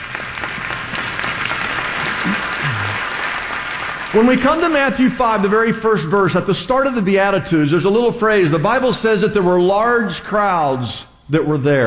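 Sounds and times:
audience clapping: 0.0 - 5.6
speech: 4.1 - 11.8.

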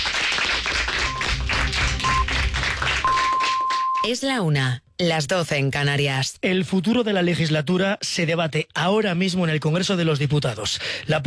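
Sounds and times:
studio audience applause: 0.0 - 4.0
short high beeps: 1.1 - 1.4, 2.0 - 2.4, 3.0 - 4.1
speech: 4.0 - 11.2.

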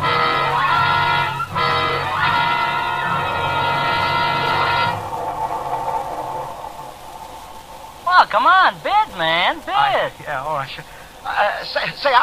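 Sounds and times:
long loud train horn blasts: 0.0 - 5.1
moving train rumbling and rattling along the rails: 0.0 - 12.2
speech: 8.3 - 12.2.

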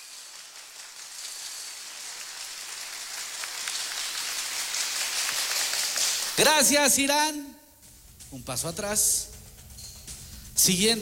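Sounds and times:
audience applause: 0.0 - 6.4
speech: 6.4 - 7.5, 8.3 - 9.4, 10.6 - 11.0.

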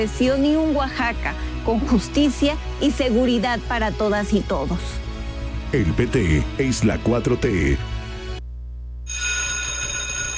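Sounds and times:
speech: 0.0 - 5.0, 5.7 - 7.9
low steady hum: 8.4 - 9.1
school bell ringing: 9.1 - 10.3.

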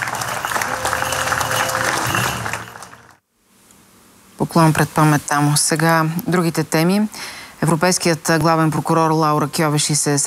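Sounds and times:
crowd applause: 0.0 - 3.2
speech: 4.5 - 10.2.

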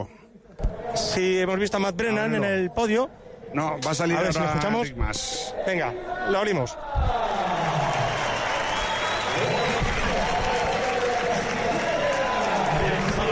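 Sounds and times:
speech: 1.0 - 7.2
crowd ovation and applause at podium: 7.1 - 13.3.

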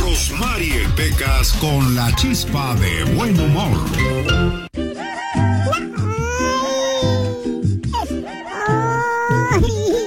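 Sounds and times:
speech: 0.2 - 4.7
person crying in exaggerated wailing sobs: 5.6 - 9.9.

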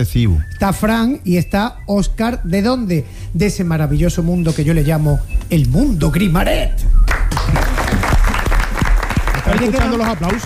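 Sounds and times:
speech: 0.0 - 7.1, 9.5 - 10.4
audience applause: 7.1 - 10.4.

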